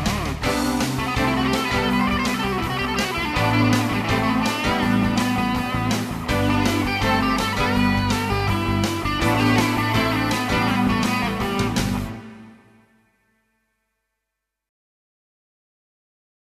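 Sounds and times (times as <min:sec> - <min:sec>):
menu music: 0:00.1 - 0:13.0.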